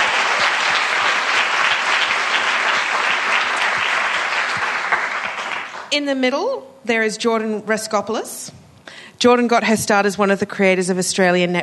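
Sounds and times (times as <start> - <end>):
audience applause: 0.0 - 5.9
speech: 5.9 - 8.6, 9.2 - 11.6.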